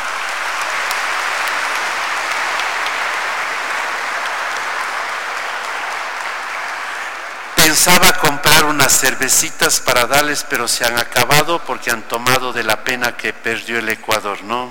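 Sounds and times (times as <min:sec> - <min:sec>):
applause: 0:00.0 - 0:09.1
speech: 0:07.7 - 0:14.6.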